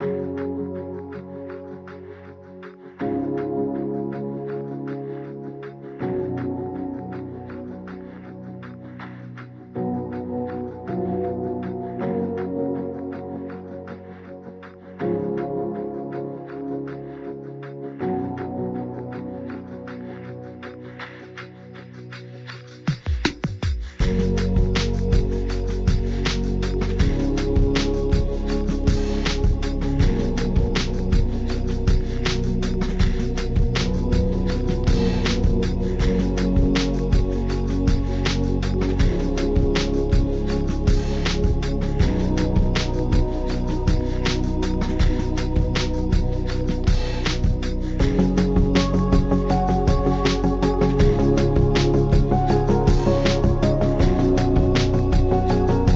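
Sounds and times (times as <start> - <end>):
lo-fi music: 0.0 - 55.9.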